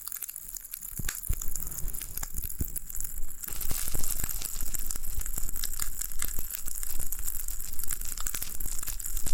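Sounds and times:
floral foam being pressed and broken: 0.9 - 9.3.

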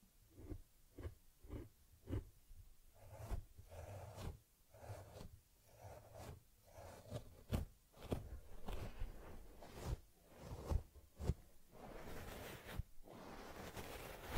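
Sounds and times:
teddy bear grooming, fur combing and rubbing strokes: 2.9 - 14.3.

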